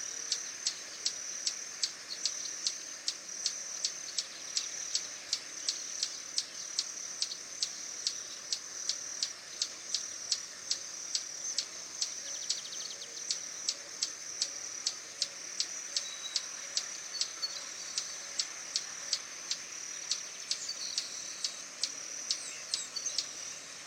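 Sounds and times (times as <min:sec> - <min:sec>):
swallow-tailed hummingbird chipping: 0:00.3 - 0:23.7.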